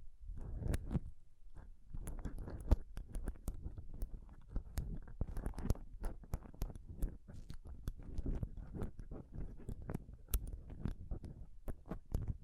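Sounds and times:
scratching and touching right on a microphone: 0:00.4 - 0:12.4
sharp ticks and clicks: 0:02.0 - 0:12.4.

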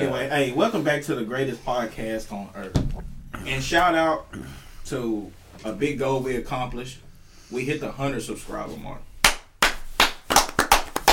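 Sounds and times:
speech: 0:00.0 - 0:09.1
hands clapping: 0:09.2 - 0:11.1.

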